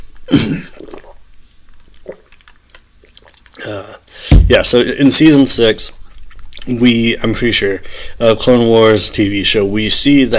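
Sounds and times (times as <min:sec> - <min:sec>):
coughing: 0:00.2 - 0:01.1
throat clearing: 0:00.3 - 0:00.9
speech: 0:04.5 - 0:06.0, 0:06.6 - 0:10.3.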